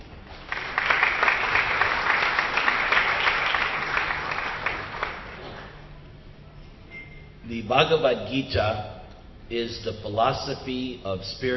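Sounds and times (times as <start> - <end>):
audience applause: 0.3 - 5.8
speech: 7.7 - 11.5.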